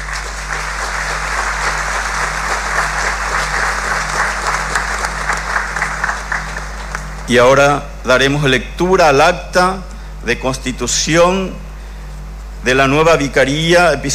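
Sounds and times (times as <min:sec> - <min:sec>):
strong applause from audience: 0:00.0 - 0:07.3
speech: 0:07.3 - 0:11.6, 0:12.6 - 0:14.1.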